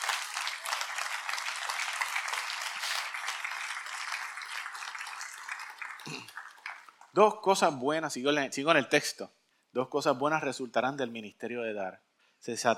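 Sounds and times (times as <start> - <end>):
audience applause: 0.0 - 7.2
speech: 6.0 - 6.4, 7.1 - 12.7.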